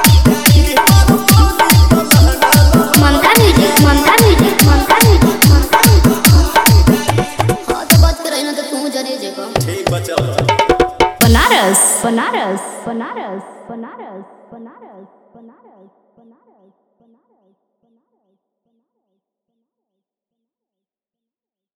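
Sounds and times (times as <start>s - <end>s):
Bhojpuri DJ remix song with hard bass: 0.0s - 8.4s, 9.6s - 12.4s.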